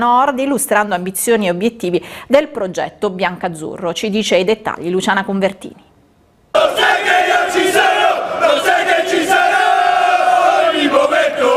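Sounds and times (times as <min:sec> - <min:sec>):
speech: 0:00.0 - 0:05.9
football ultras crowd chanting: 0:06.6 - 0:11.5.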